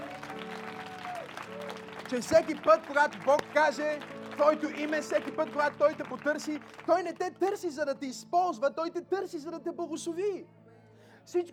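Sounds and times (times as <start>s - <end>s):
audience clapping: 0.0s - 7.8s
speech: 2.1s - 10.6s, 11.2s - 11.5s.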